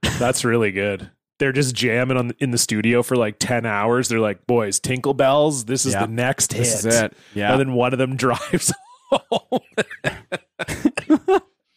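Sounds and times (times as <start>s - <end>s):
harsh coughing from someone recovering from COVID: 0.0s - 0.4s, 9.6s - 11.7s
speech: 0.2s - 10.9s
laughter: 5.9s - 7.6s, 8.2s - 11.4s.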